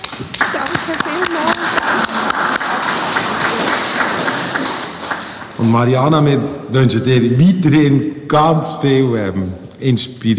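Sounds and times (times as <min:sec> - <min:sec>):
applause: 0:00.0 - 0:05.8
speech: 0:05.6 - 0:10.3.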